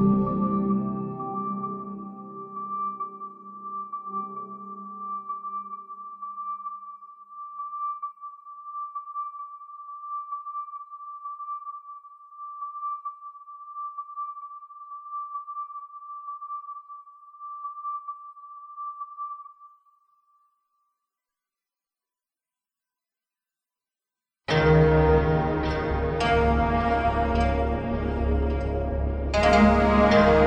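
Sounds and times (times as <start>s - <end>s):
synthesizer: 0.0s - 13.7s, 24.5s - 30.4s.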